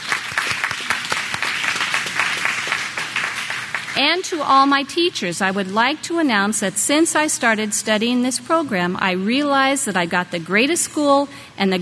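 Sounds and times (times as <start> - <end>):
audience clapping: 0.0 - 4.0
speech: 4.0 - 11.7.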